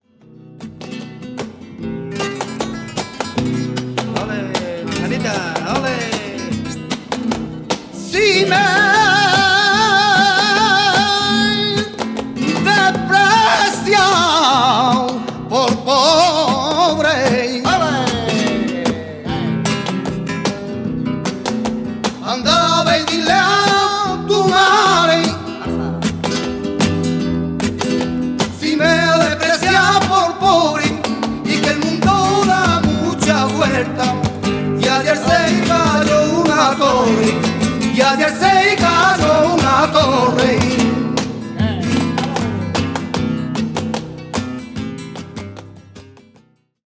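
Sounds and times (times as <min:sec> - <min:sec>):
tango music: 0:00.8 - 0:45.2.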